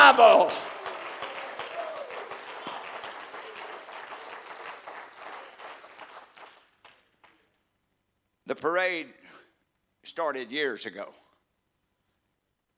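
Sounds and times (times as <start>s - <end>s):
audience clapping hands: 0.0s - 7.6s
speech: 8.5s - 9.4s, 10.0s - 11.2s.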